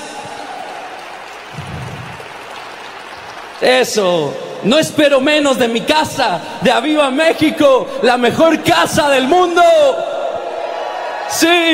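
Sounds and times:
audience applause: 0.0 - 4.3
speech: 3.6 - 10.1, 11.3 - 11.7.

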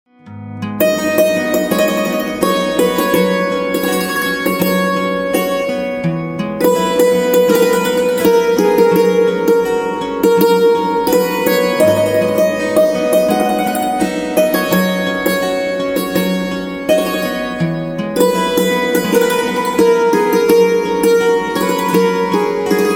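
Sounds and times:
santoor playing: 0.6 - 22.9.

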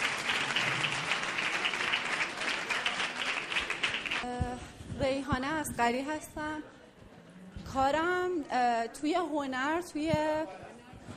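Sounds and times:
audience applause: 0.0 - 4.3
speech: 5.0 - 6.8, 7.7 - 10.6.

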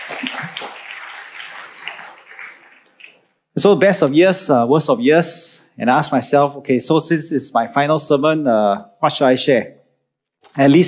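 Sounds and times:
audience applause: 0.0 - 3.3
speech: 3.6 - 9.8, 10.5 - 10.8.

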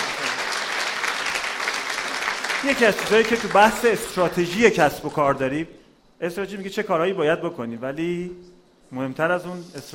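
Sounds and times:
audience applause at a talk: 0.0 - 3.9
speech: 2.6 - 9.9.

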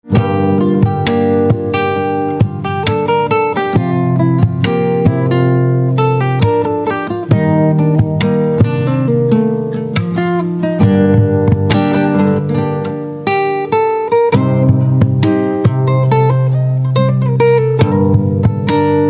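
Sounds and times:
guitar: 0.0 - 19.0.

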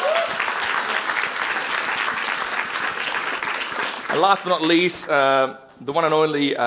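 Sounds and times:
crowd applause: 0.0 - 4.9
speech: 4.2 - 6.6.

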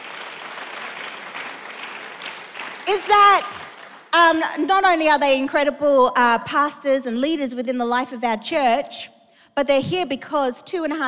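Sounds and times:
audience applause during a church service for a pastor couple: 0.0 - 4.2
speech: 2.9 - 11.0.

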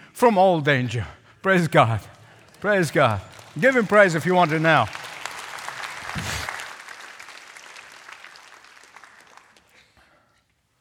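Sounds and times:
speech: 0.2 - 5.0
audience clapping: 1.5 - 10.1.

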